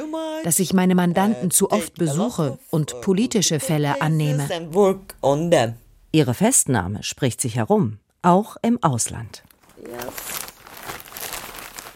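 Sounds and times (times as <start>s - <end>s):
speech: 0.1s - 10.2s
two plastic bags rustling as pulled out from under a sofa: 9.4s - 11.9s.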